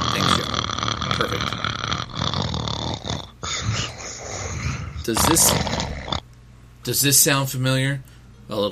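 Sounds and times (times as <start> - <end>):
recorded sound of a person snoring: 0.0 - 6.2
speech: 1.2 - 1.6, 5.1 - 5.7, 6.9 - 8.7.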